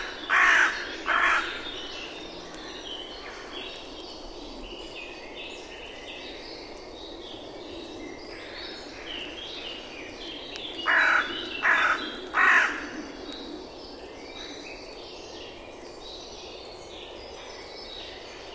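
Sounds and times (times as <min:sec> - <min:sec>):
bird giving harsh cawing calls: 0:00.0 - 0:01.6, 0:10.8 - 0:12.9.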